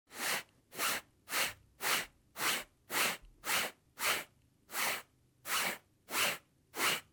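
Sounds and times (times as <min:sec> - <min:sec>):
sponge sound: 0:00.1 - 0:07.1.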